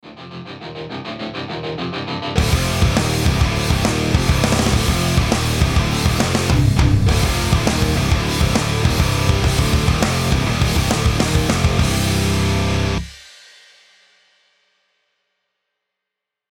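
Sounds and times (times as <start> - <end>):
powerful hard rock logo music: 0.8 - 13.2.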